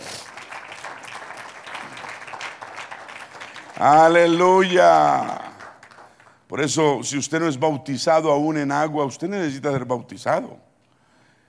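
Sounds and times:
audience applause: 0.0 - 6.4
speech: 3.8 - 5.4, 6.5 - 10.7.

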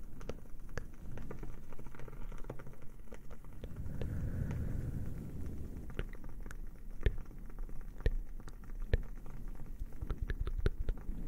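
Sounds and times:
fire crackling: 0.0 - 11.2
steady low roar: 3.5 - 6.5.

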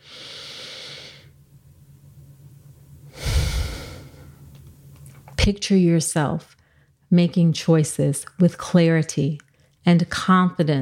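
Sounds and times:
slow deep breath during a guided relaxation: 0.0 - 1.3, 3.1 - 4.4
speech: 5.5 - 10.8.

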